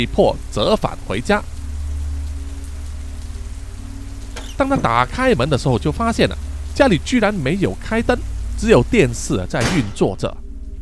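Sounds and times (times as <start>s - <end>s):
speech: 0.0s - 1.5s, 4.6s - 10.4s
heavy rain pouring: 0.0s - 10.0s
low rumble: 1.5s - 9.5s.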